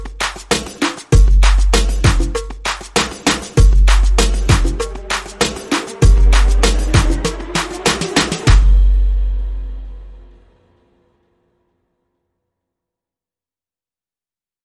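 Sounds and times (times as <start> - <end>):
drums and percussion: 0.0 - 10.4.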